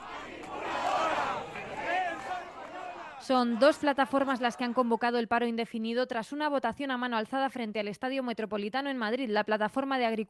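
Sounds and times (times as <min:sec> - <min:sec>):
protesters shouting slogans against the government: 0:00.0 - 0:04.9
speech: 0:03.2 - 0:10.2.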